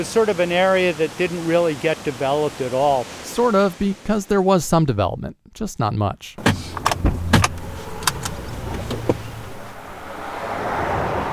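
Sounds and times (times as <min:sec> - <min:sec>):
speech: 0:00.0 - 0:06.8
low steady rumble of a car getting going: 0:06.4 - 0:10.3
sharp thumps and clicks of people getting into a car: 0:06.4 - 0:10.3.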